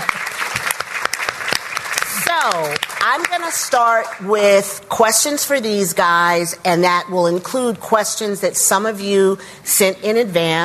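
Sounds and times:
audience applause: 0.0s - 4.2s
speech: 2.4s - 10.6s.

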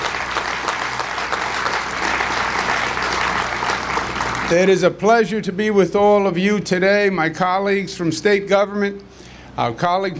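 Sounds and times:
applause: 0.0s - 4.8s
speech: 4.5s - 10.1s.

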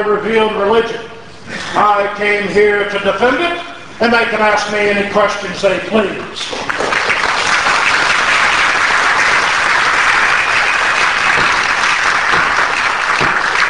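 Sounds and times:
speech: 0.0s - 6.7s
applause from the bleachers: 6.6s - 13.6s.

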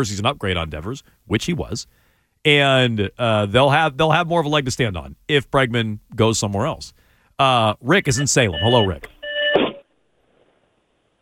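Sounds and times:
speech: 0.0s - 9.2s
short buzzy electronic beep on a phone line: 8.1s - 9.8s.

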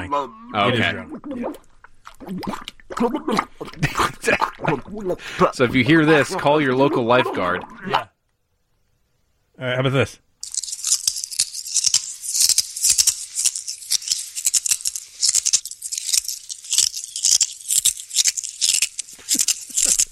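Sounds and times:
speech: 0.1s - 8.1s, 9.6s - 10.2s
person eating glass: 0.7s - 5.2s, 10.4s - 20.0s.

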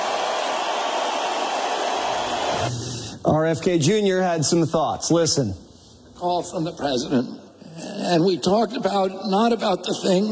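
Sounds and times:
roaring crowd cheering at a rally: 0.0s - 2.7s
speech: 2.6s - 10.3s.

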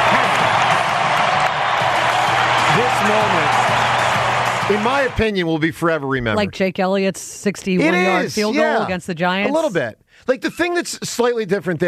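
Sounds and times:
baseball crowd cheering as the Phillies take the lead: 0.0s - 5.6s
speech: 3.0s - 3.6s, 4.7s - 11.8s.

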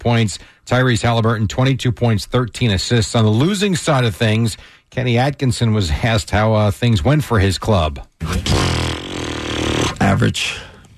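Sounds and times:
speech: 0.0s - 9.0s, 10.0s - 10.7s
buzzing raspberry blown through the lips: 8.2s - 10.0s.

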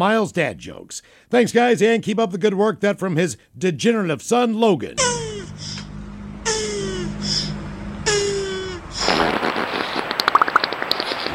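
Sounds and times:
speech: 0.0s - 5.7s
beaver fart sound effect: 6.4s - 11.3s.

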